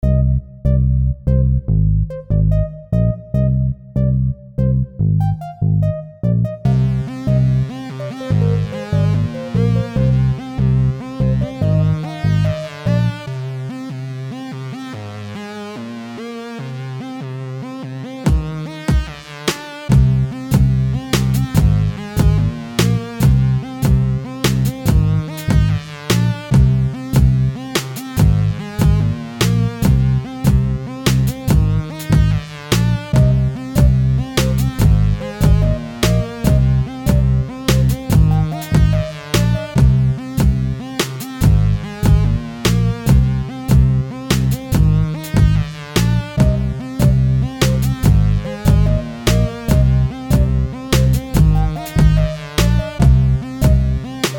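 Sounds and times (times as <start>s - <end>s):
electro music at 145 BPM: 0.0s - 54.3s.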